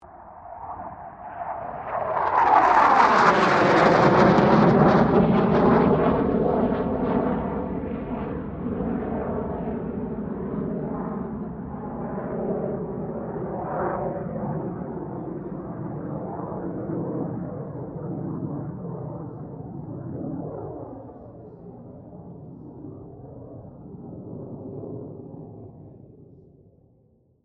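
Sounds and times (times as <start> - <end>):
CA-27 Sabre jet aircraft passing: 0.1 - 26.2.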